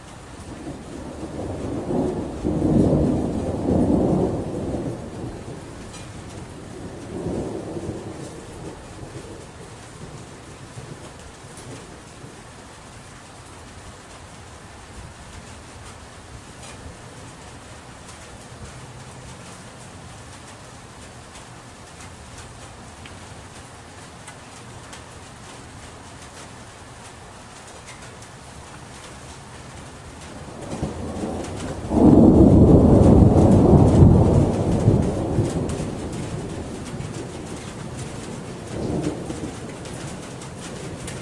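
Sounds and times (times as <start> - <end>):
August thunderstorm: 0.0 - 12.5, 29.8 - 41.2.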